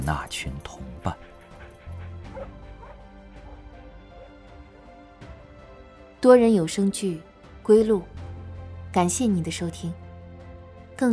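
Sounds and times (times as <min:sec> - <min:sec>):
speech: 0:00.0 - 0:01.3, 0:06.2 - 0:08.2, 0:08.9 - 0:10.0, 0:11.0 - 0:11.1
dog yelping howl: 0:01.3 - 0:03.6.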